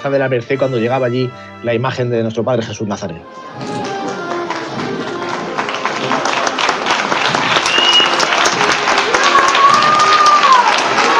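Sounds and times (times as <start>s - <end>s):
speech: 0.0s - 3.9s
crowd cheering for a religious procession: 3.3s - 11.1s.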